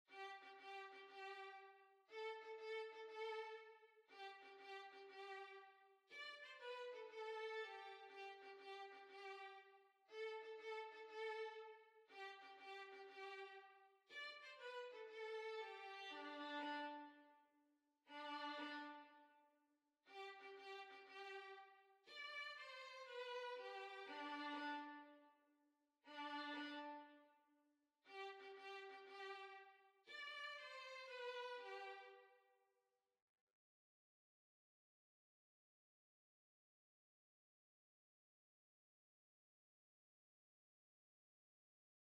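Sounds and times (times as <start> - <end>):
violin: 0.1 - 17.4, 18.1 - 19.4, 20.1 - 25.3, 26.1 - 27.4, 28.1 - 32.4.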